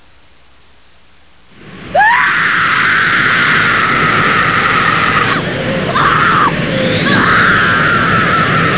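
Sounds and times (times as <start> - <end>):
person screaming: 1.9 - 8.6.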